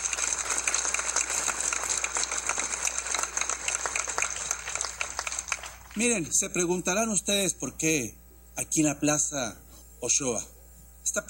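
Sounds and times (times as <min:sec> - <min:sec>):
audience applause: 0:00.0 - 0:06.2
speech: 0:06.0 - 0:10.6.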